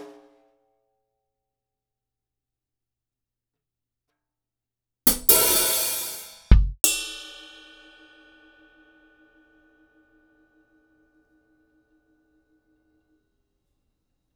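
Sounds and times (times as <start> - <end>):
Akai MPC500 Rod drum kit hits: 5.1 - 7.2.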